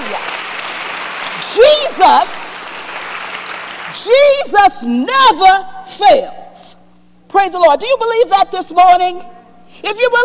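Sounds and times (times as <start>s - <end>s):
audience clapping hands: 0.0s - 4.0s
speech: 2.0s - 2.4s, 3.9s - 10.2s.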